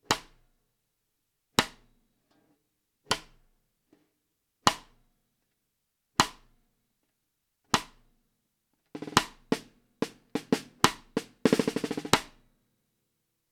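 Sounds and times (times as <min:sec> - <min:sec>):
Tama LMB1465 drum: 0:09.0 - 0:12.4.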